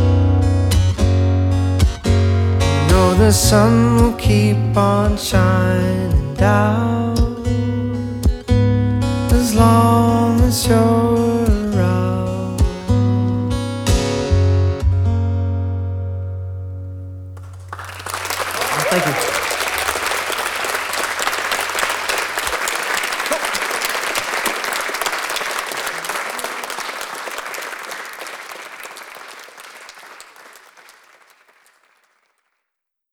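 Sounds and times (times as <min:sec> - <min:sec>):
acoustic music: 0:00.0 - 0:22.0
laughter: 0:17.9 - 0:27.9.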